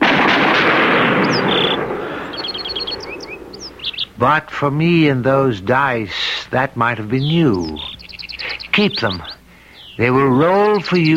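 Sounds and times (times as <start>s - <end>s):
firing squad gunfire volley: 0.0s - 3.8s
high bird chirps: 1.1s - 4.3s, 7.0s - 11.1s
speech: 4.2s - 7.9s, 8.8s - 9.3s, 10.0s - 11.1s.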